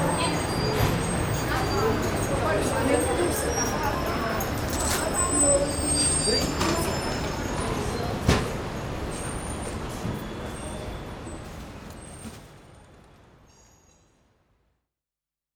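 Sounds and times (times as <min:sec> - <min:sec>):
train station passage ambience: 0:00.0 - 0:14.6.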